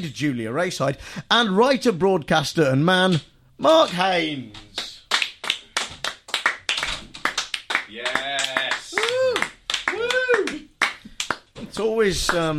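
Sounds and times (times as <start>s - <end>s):
speech: 0.0s - 4.9s, 11.8s - 12.5s
sparse hand claps from a studio crew: 4.7s - 12.5s.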